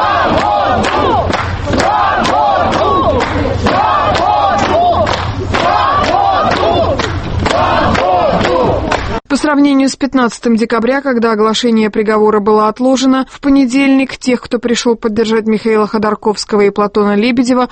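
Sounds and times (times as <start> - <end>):
large crowd chanting in unison: 0.0 - 9.2
speech: 9.5 - 17.6.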